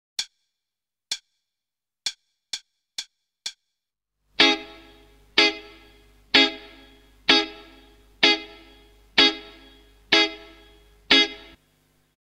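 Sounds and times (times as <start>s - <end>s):
starter guitar rhythm: 4.4s - 11.6s.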